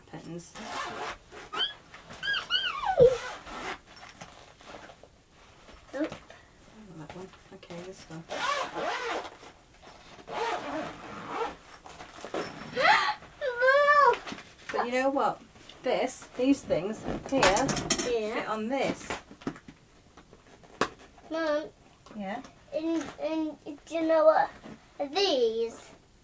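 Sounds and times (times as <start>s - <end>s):
speech: 0.3s - 1.3s, 14.9s - 19.2s, 21.3s - 25.8s
zipper of a fishy-themed toy bag opening: 0.5s - 5.0s, 8.3s - 12.8s
adult and child voices: 12.8s - 15.0s, 17.3s - 19.0s, 21.3s - 21.8s, 22.7s - 25.9s.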